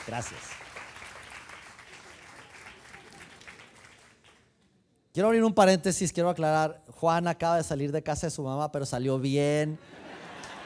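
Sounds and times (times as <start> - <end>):
speech: 0.0 - 0.6, 5.2 - 10.0
audience applauding the actors: 0.0 - 4.4
laughter: 9.8 - 10.6.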